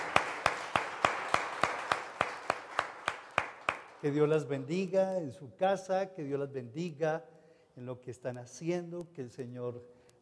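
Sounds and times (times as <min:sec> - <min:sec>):
audience applause: 0:00.0 - 0:04.0
speech: 0:04.0 - 0:10.0.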